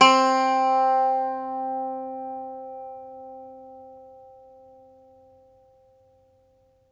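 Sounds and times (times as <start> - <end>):
Irish bouzouki plucked strings: 0.0 - 3.9.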